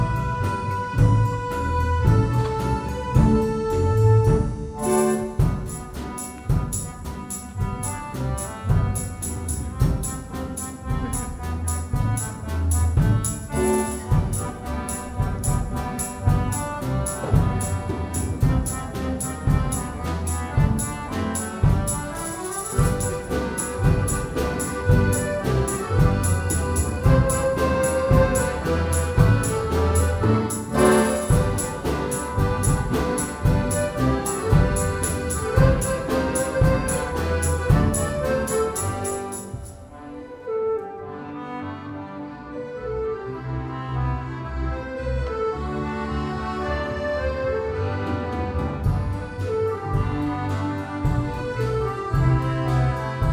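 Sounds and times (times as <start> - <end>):
Christmas song: 0.1 - 53.3.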